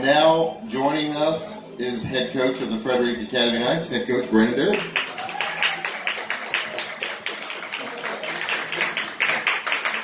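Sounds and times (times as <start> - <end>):
speech: 0.0 - 5.1
live audience applauding and cheering: 4.7 - 10.0.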